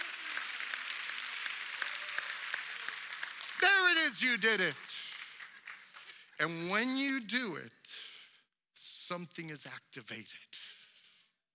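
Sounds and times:
audience clapping hands: 0:00.0 - 0:07.0
speech: 0:04.1 - 0:04.9, 0:06.4 - 0:08.1, 0:09.1 - 0:10.7.

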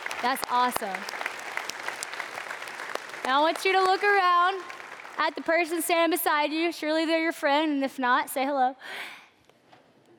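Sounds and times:
audience applause: 0:00.0 - 0:05.8
speech: 0:00.2 - 0:01.2, 0:03.2 - 0:09.2.

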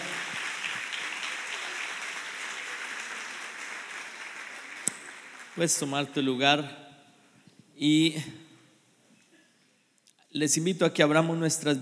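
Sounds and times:
applause: 0:00.0 - 0:06.3
speech: 0:05.6 - 0:06.8, 0:07.8 - 0:08.4, 0:10.3 - 0:11.8.

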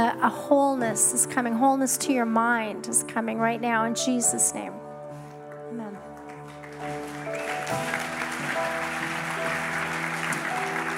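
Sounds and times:
speech: 0:00.0 - 0:04.9
audience clapping: 0:06.1 - 0:10.9.

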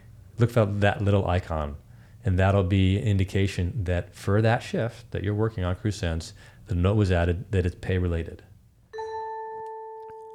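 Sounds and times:
speech: 0:00.4 - 0:08.5
bell ringing: 0:08.9 - 0:10.3.

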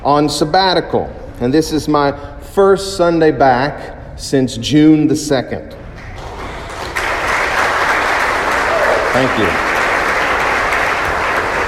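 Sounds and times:
speech: 0:00.0 - 0:05.8, 0:09.2 - 0:09.7
audience applauding: 0:06.1 - 0:11.6.

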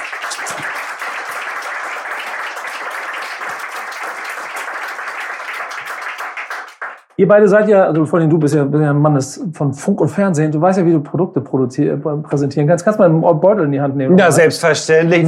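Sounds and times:
audience applause: 0:00.0 - 0:07.1
speech: 0:07.2 - 0:15.2.

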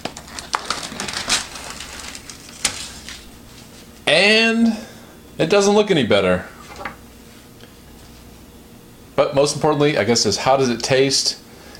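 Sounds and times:
microwave meal package being opened: 0:00.0 - 0:03.8
speech: 0:04.2 - 0:06.5, 0:09.3 - 0:11.4.

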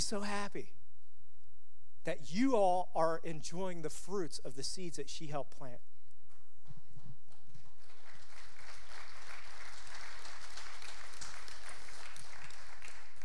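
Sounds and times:
speech: 0:00.0 - 0:00.8, 0:02.0 - 0:05.9
audience clapping: 0:06.6 - 0:13.2.

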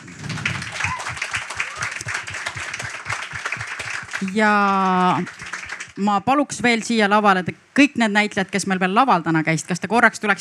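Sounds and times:
audience applauding actors: 0:00.0 - 0:06.0
speech: 0:04.2 - 0:10.4.

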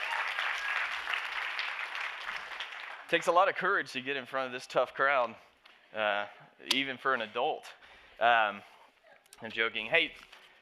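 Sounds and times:
audience applause: 0:00.0 - 0:03.2
speech: 0:03.1 - 0:08.7, 0:09.4 - 0:10.3.

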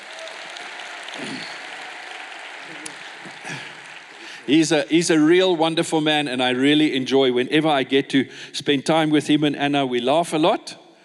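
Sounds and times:
audience applause welcoming a speaker at a faith gathering: 0:00.0 - 0:05.3
speech: 0:04.5 - 0:10.8.

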